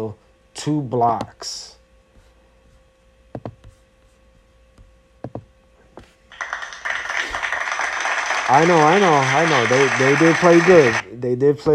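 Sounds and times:
speech: 0.0 - 1.8, 8.5 - 11.7
hand clapping: 6.3 - 11.0.

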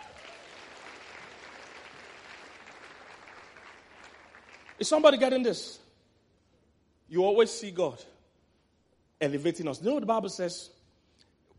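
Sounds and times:
audience clapping: 0.0 - 5.3
speech: 4.8 - 5.8, 7.1 - 8.1, 9.2 - 10.8.

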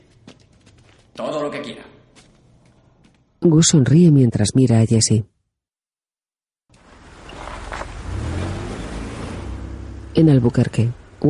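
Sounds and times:
speech: 1.2 - 1.9, 3.4 - 5.4, 10.2 - 11.2
car engine and tyre noise, driving and pulling up in front of a house in Albuquerque: 6.7 - 11.2.

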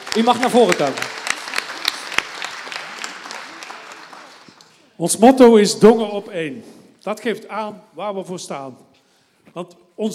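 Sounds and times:
audience applause for a speaker: 0.0 - 5.0
speech: 0.2 - 1.2, 5.0 - 8.9, 9.5 - 10.1.

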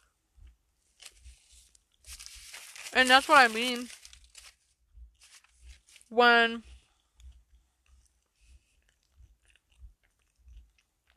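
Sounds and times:
speech: 3.0 - 4.0, 6.1 - 6.7
person chewing crunchy food: 6.9 - 11.1.

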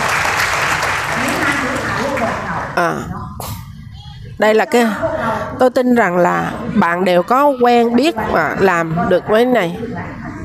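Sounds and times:
audience applause: 0.0 - 2.6
speech: 2.8 - 3.5, 4.4 - 10.2.

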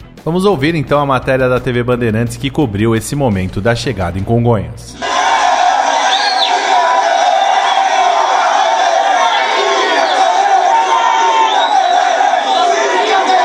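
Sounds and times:
speech: 0.2 - 5.1
crowd of football fans cheering and shouting at an airport arrival: 5.0 - 13.4
whoops: 5.0 - 13.4.

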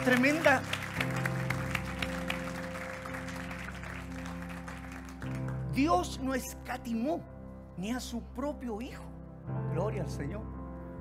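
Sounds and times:
speech: 0.0 - 1.2, 5.8 - 10.9
audience applause: 0.0 - 5.7
sustained low keyboard chords: 0.0 - 10.9.

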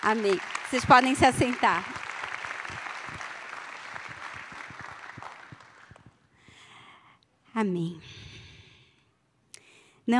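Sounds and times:
speech: 0.0 - 1.9, 7.6 - 8.2
audience applause: 0.0 - 6.2.

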